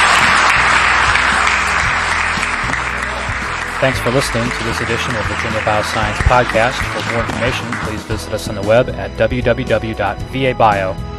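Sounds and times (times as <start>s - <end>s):
crowd applauding a panel: 0.0s - 8.9s
speech: 3.8s - 11.1s.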